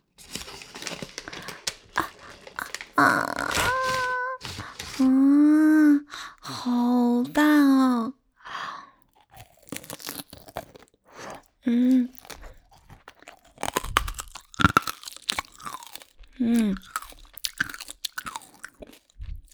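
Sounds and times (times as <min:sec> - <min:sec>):
person chewing: 0:00.0 - 0:05.1, 0:08.5 - 0:19.5
crunching on candied hawthorn skewers with hard sugar coating: 0:00.0 - 0:05.2, 0:06.1 - 0:19.5
brief vocal sounds: 0:02.0 - 0:06.7
speech: 0:03.0 - 0:03.7, 0:05.0 - 0:05.2.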